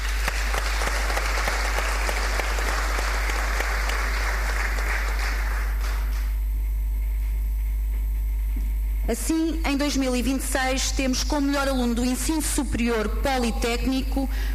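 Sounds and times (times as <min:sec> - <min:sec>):
audience applause: 0:00.0 - 0:06.3
low hum: 0:00.0 - 0:14.5
speech: 0:09.1 - 0:14.5.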